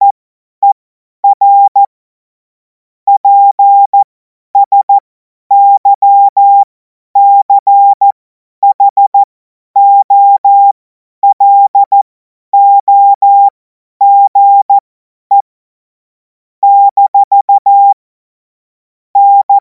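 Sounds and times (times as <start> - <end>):
CW Morse code beeps: 0.6 - 1.9, 3.1 - 12.0, 12.6 - 15.5, 16.6 - 18.0, 19.2 - 19.5.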